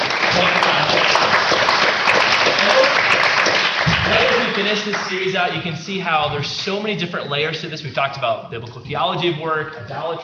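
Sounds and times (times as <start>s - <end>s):
round of applause: 0.0s - 5.6s
speech: 4.6s - 10.2s.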